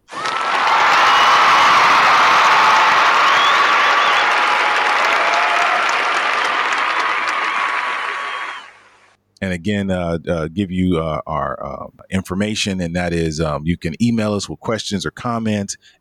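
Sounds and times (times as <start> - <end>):
applause: 0.0 - 9.1
speech: 9.6 - 16.0.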